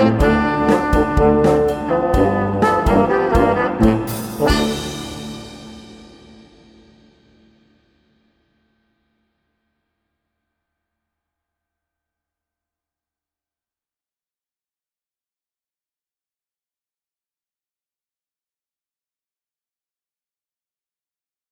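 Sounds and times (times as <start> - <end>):
funk music: 0.0 - 6.9.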